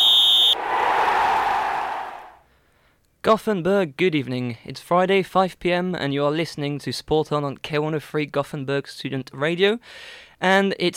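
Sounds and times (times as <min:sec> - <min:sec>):
shrill whistle blast: 0:00.0 - 0:00.8
broad rushing roar: 0:00.5 - 0:02.3
speech: 0:03.2 - 0:10.9.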